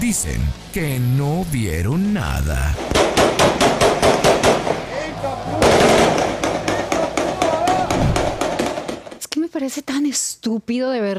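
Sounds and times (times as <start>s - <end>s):
speech: 0.0s - 3.6s, 9.6s - 11.1s
sustained burst of gunfire: 2.8s - 4.8s, 5.6s - 9.2s.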